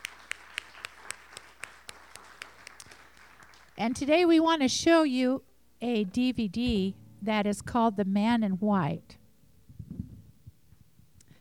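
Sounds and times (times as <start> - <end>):
audience clapping hands: 0.0 - 4.2
speech: 3.8 - 9.2.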